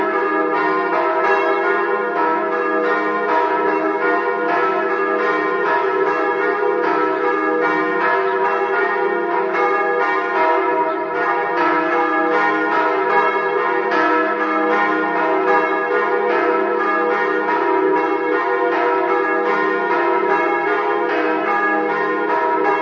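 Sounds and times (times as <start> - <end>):
bells: 0.0 - 22.8.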